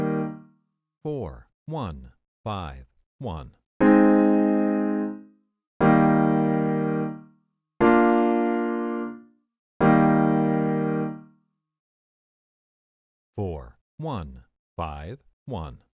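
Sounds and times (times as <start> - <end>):
easy I IV V chord progression: 0.0 - 0.5, 3.8 - 11.3.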